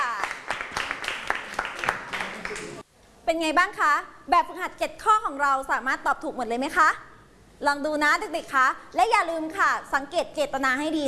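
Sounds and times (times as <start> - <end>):
classroom applause: 0.0 - 2.8
speech: 3.3 - 11.0.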